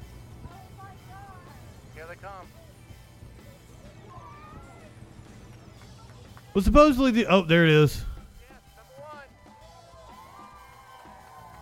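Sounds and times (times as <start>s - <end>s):
speech: 2.2s - 2.7s, 6.6s - 8.1s
faint crowd cheering at a SpaceX rocket test: 3.9s - 11.5s.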